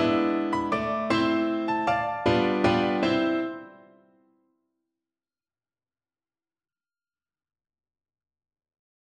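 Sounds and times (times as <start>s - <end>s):
piano waltz: 0.0s - 4.1s.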